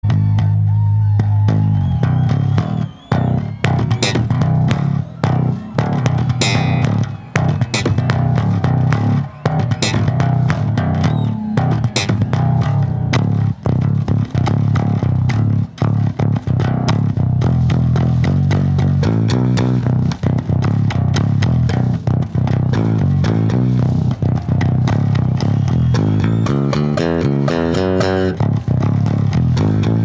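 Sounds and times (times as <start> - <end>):
bass solo: 0.0 - 30.0.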